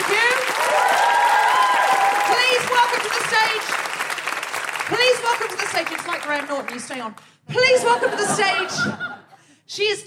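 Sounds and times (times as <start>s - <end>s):
audience applause: 0.0s - 7.2s
speech: 4.9s - 10.0s
laughter: 7.6s - 9.4s.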